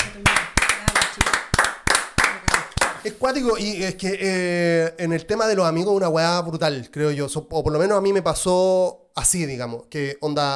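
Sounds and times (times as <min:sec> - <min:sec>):
clapping applause: 0:00.0 - 0:03.0
speech: 0:03.0 - 0:10.5.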